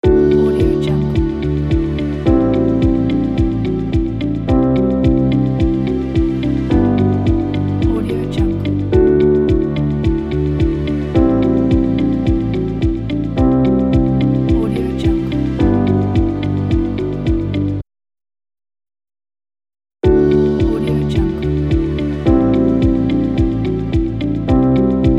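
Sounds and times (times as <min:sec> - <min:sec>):
advertising background music loop: 0:00.0 - 0:17.8, 0:20.0 - 0:25.1.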